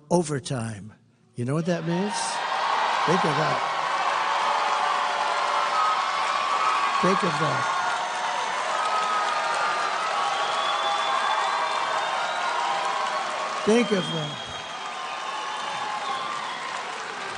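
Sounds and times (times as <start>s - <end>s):
speech: 0.1s - 2.4s, 3.1s - 3.7s, 7.0s - 7.8s, 13.6s - 14.5s
crowd cheering and screaming: 1.8s - 17.3s.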